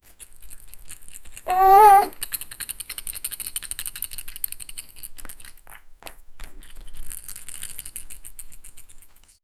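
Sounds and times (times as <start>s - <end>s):
baby playing with ball: 1.1s - 2.3s.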